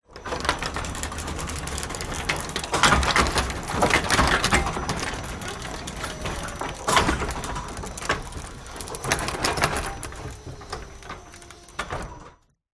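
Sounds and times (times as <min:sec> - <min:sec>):
household wooden electric motorised garage door opening or closing: 0:00.0 - 0:12.6.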